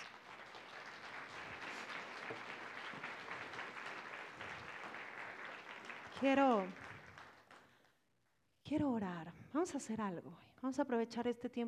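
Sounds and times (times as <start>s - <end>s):
audience applause: 0.0s - 7.6s
speech: 2.3s - 3.1s, 6.2s - 6.8s, 8.7s - 11.6s.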